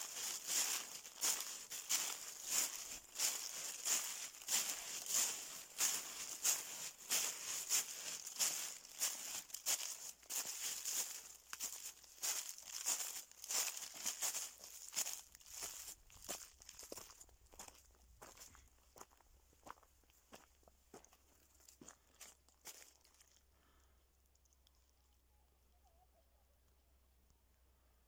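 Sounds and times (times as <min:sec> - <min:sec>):
autumn leaves rustling: 0:00.0 - 0:17.7.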